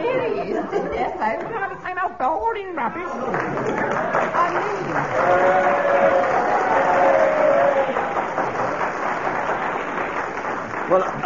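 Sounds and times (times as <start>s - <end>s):
speech: 0.7s - 5.6s
crowd applauding: 3.2s - 11.2s.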